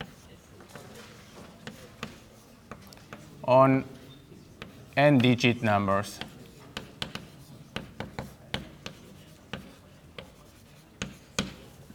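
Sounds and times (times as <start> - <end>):
pen writing notes by hand: 0.0 - 5.3, 6.2 - 11.9
speech: 3.5 - 4.0, 5.0 - 6.3.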